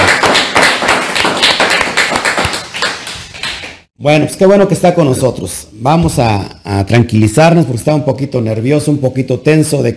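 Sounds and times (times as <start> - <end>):
loud crowd applause: 0.0 - 3.7
speech: 4.0 - 9.9.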